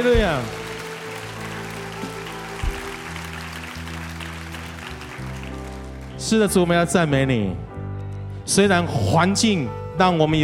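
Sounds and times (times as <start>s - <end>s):
speech: 0.0s - 0.6s, 6.2s - 7.6s, 8.5s - 10.4s
audience applause: 0.0s - 6.2s
sustained low keyboard chords: 0.0s - 10.4s.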